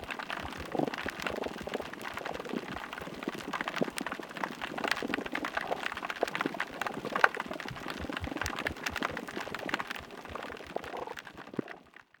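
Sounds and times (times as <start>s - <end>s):
underwater ambience on the Penghu seabed: 0.0s - 12.1s.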